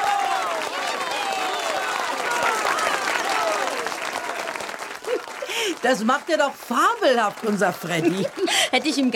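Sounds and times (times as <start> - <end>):
audience applause: 0.0 - 9.1
laughter: 5.0 - 5.8, 7.8 - 9.1
speech: 5.8 - 9.1.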